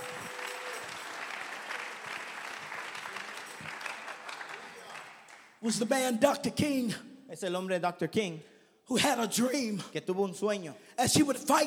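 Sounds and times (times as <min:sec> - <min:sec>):
audience clapping hands: 0:00.0 - 0:05.9
speech: 0:05.6 - 0:11.6.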